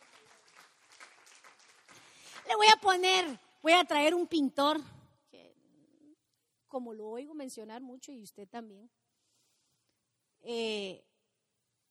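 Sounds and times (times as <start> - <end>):
audience applause: 0.0 - 2.5
speech: 2.6 - 5.0, 6.7 - 9.0, 10.4 - 11.1.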